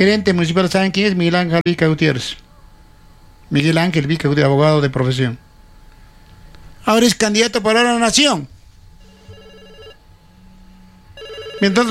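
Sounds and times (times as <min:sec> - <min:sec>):
speech: 0:00.0 - 0:02.4, 0:03.5 - 0:05.4, 0:06.8 - 0:08.6, 0:11.6 - 0:11.8
telephone ringing for a radio news show call-in: 0:09.0 - 0:10.0, 0:11.2 - 0:11.8.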